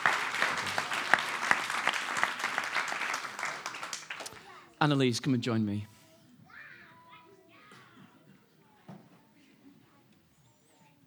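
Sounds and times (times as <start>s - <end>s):
round of applause from an audience: 0.0s - 4.6s
speech: 4.8s - 5.9s.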